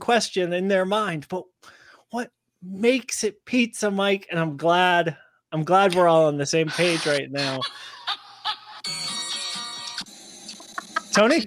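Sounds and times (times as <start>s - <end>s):
speech: 0.0s - 8.2s, 11.2s - 11.4s
laughter: 6.7s - 8.8s, 10.5s - 11.4s
phone ringtone: 8.8s - 11.4s.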